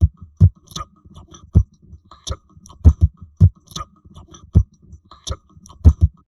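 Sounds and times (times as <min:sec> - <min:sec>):
heavily processed drum loops: 0:00.0 - 0:00.8, 0:01.6 - 0:03.8, 0:05.7 - 0:06.2.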